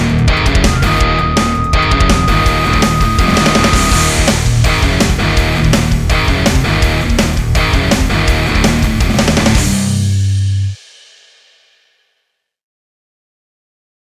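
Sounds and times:
rock version: 0.0 - 10.8.

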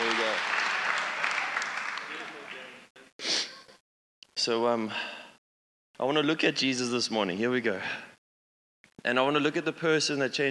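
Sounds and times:
audience cheering: 0.0 - 2.8
speech: 4.4 - 5.2, 6.0 - 8.1, 9.0 - 10.4.

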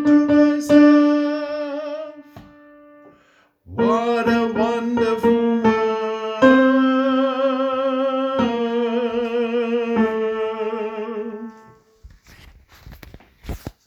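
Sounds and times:
tenor singing: 0.0 - 2.6, 3.7 - 11.9.

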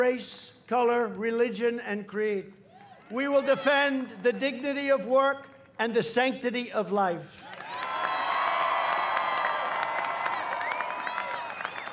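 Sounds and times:
speech: 0.0 - 7.5
large crowd cheering and shouting: 2.7 - 5.2, 7.4 - 11.9.

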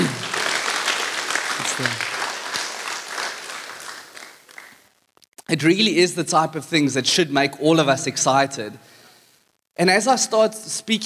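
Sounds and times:
audience applause: 0.0 - 4.9
speech: 1.8 - 2.1, 5.6 - 8.9, 9.8 - 11.0.

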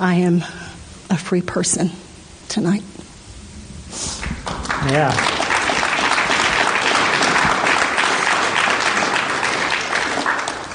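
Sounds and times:
speech: 0.0 - 3.1, 4.8 - 5.4
audience applause: 4.2 - 10.7.

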